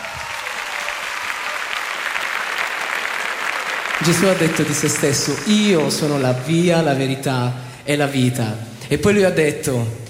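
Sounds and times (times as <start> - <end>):
audience applause: 0.0 - 7.3
speech: 4.0 - 10.0.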